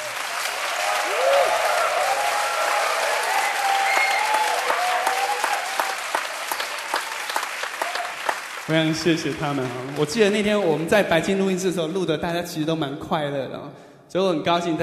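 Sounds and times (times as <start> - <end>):
faint tonal murmurs and cheers: 0.0 - 10.4
audience applause: 0.0 - 11.2
speech: 8.7 - 14.8.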